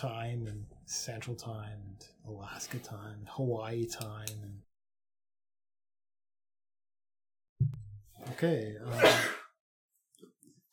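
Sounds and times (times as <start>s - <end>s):
speech: 0.0s - 4.7s, 7.6s - 9.4s
person sneezing: 8.9s - 9.5s.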